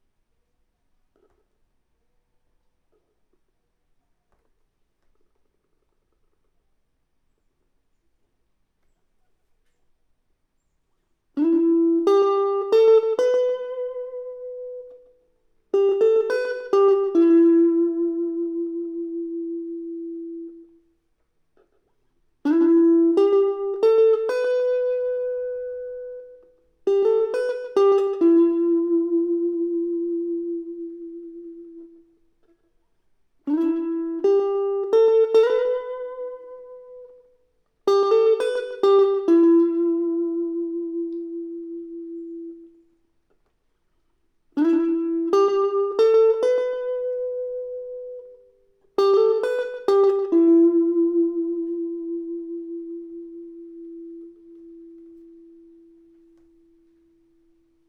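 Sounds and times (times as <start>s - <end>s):
electric guitar: 11.4s - 20.8s, 22.5s - 32.6s, 33.5s - 42.8s, 44.6s - 57.5s.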